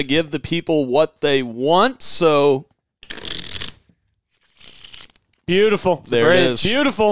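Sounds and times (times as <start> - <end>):
speech: 0.0 - 2.7, 5.5 - 7.1
deck of playing cards being shuffled: 3.0 - 6.2.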